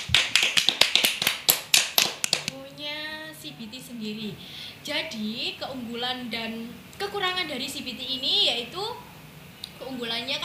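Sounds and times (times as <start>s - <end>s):
small group clapping hands in applause: 0.0s - 2.6s
speech: 3.6s - 9.0s, 9.9s - 10.4s.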